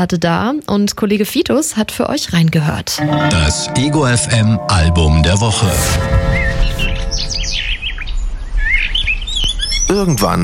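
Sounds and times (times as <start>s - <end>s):
speech: 0.0s - 6.9s, 9.9s - 10.4s
bird singing: 6.0s - 10.4s.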